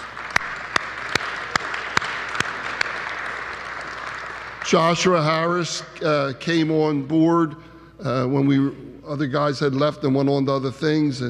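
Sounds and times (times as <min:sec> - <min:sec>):
audience applause: 0:00.0 - 0:05.6
speech: 0:04.7 - 0:11.2.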